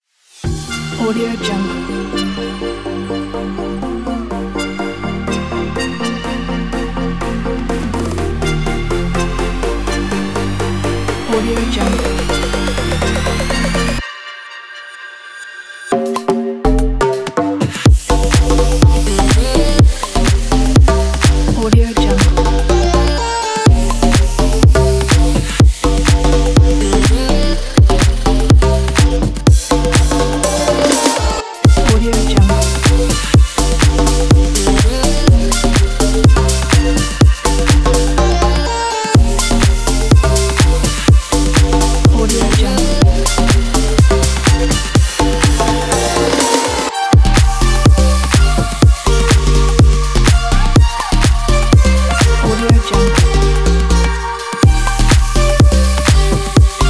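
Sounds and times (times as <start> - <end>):
future house music: 0.4 - 56.8.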